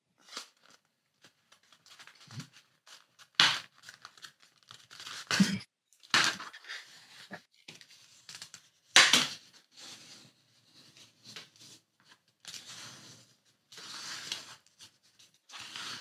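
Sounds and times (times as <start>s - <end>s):
paper plate circle being folded: 0.2s - 5.4s, 6.2s - 15.9s.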